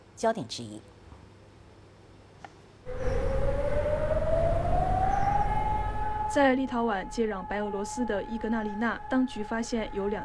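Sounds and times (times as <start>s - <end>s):
speech: 0.2s - 0.9s, 6.3s - 10.2s
air raid siren: 2.9s - 10.2s.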